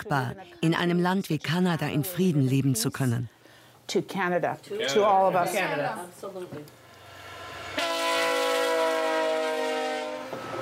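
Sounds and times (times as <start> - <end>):
speech: 0.0 - 6.8
train approaching: 6.8 - 10.6.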